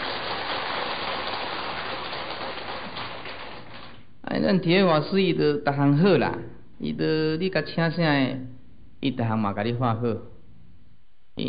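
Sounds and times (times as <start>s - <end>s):
audience clapping: 0.0s - 4.1s
speech: 4.3s - 10.3s.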